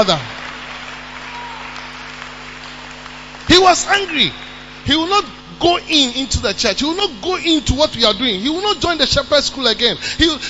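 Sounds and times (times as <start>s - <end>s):
speech: 0.0s - 0.4s, 3.6s - 10.4s
audience clapping: 0.0s - 4.4s
low steady hum: 0.0s - 10.4s.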